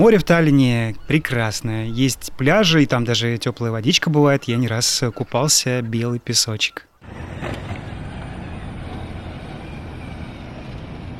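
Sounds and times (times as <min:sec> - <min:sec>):
speech: 0:00.0 - 0:07.9
delivery robot driving along sidewalk: 0:07.0 - 0:11.1.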